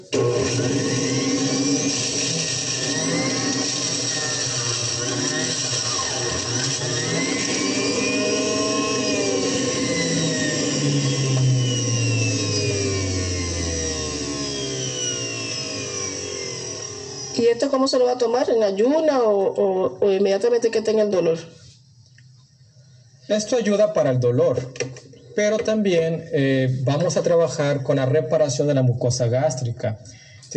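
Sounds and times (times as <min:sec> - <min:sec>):
speech: 0:00.0 - 0:01.0, 0:17.6 - 0:21.6, 0:23.3 - 0:30.5
blender pureeing potato and cabbage: 0:00.0 - 0:18.1.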